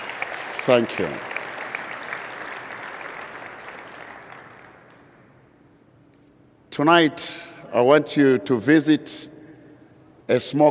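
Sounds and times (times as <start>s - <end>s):
crowd applauding: 0.0s - 5.2s
speech: 0.7s - 1.3s, 6.8s - 9.3s, 10.3s - 10.7s.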